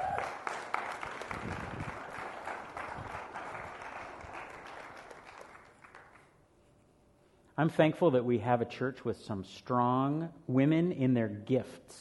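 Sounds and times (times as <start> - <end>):
audience applause: 0.0 - 6.3
speech: 7.6 - 11.9.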